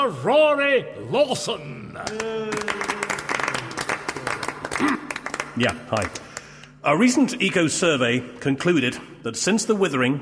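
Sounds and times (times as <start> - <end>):
speech: 0.0 - 2.9, 5.6 - 6.2, 6.8 - 10.2
applause from eco summit delegates in an audio drama: 2.1 - 6.5.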